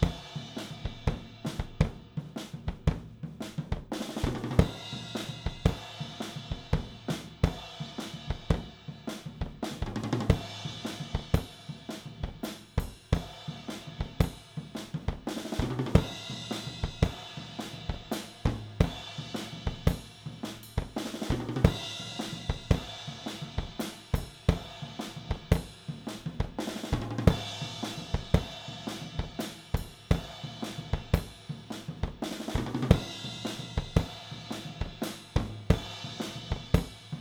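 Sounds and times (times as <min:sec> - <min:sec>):
drums recorded with an AKG414 microphone: 0:00.0 - 0:37.1.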